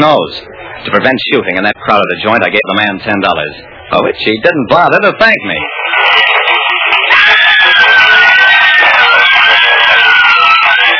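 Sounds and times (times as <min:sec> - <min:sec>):
speech: 0:00.0 - 0:06.6
women screaming and hollering for a singer: 0:05.9 - 0:10.9.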